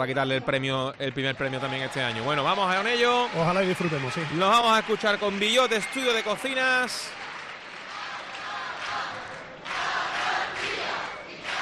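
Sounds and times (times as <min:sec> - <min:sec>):
speech: 0:00.0 - 0:07.3
carnival audience chanting phrases and refrains at a quartet competition: 0:07.2 - 0:11.6.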